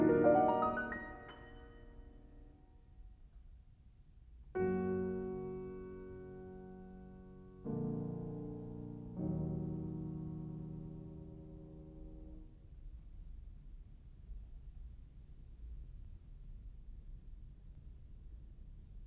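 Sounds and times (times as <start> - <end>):
piano prelude in E flat minor: 0.0 - 2.5, 4.6 - 12.6.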